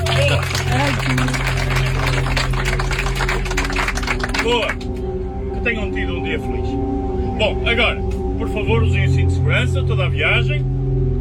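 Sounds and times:
applause from bus passengers: 0.0s - 5.0s
speech: 4.5s - 4.9s, 5.7s - 10.8s.

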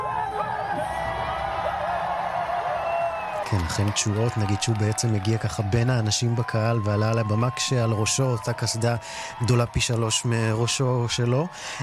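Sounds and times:
audience cheering with whoops as a legend comes onto the stage: 0.0s - 11.8s
speech: 3.5s - 11.8s.

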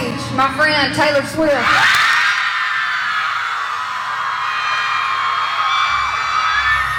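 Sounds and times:
speech: 0.4s - 2.0s
concert crowd cheering: 1.5s - 6.9s.

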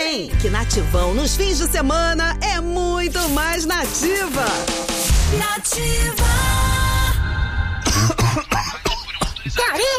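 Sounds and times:
speech: 0.2s - 6.6s, 9.5s - 9.9s
person coughing: 7.8s - 9.9s.

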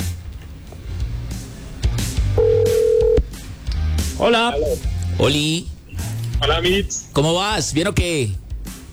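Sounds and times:
phone call ringing: 0.1s - 3.5s, 4.2s - 7.2s
speech: 4.2s - 5.7s, 6.4s - 8.4s.

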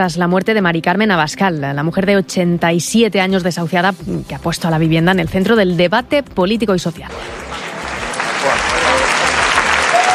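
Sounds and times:
speech: 0.0s - 7.6s
murmur of voices: 7.1s - 10.0s
protesters applauding outdoors: 7.1s - 10.1s.

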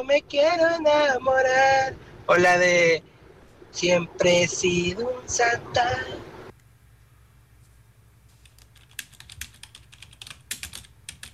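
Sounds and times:
speech: 0.0s - 3.1s, 3.7s - 6.3s
low steady hum: 0.0s - 11.3s
typing on a computer keyboard: 8.4s - 11.3s.

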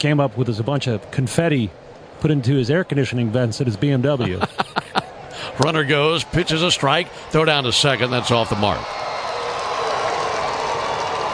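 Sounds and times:
speech: 0.0s - 4.6s, 5.4s - 9.0s
laughter: 4.2s - 7.5s
stadium crowd cheering and clapping after stolen base: 4.9s - 11.3s.

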